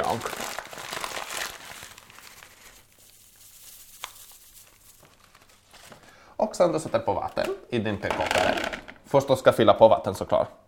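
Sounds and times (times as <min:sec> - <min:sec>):
soup packet being opened: 0:00.0 - 0:05.6
speech: 0:00.1 - 0:00.4, 0:06.6 - 0:10.6
soup packet contents pouring: 0:01.8 - 0:05.6.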